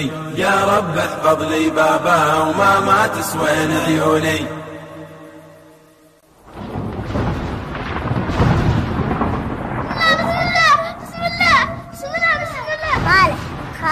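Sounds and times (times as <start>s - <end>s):
speech: 0.0s - 4.7s
thunder: 6.4s - 13.9s.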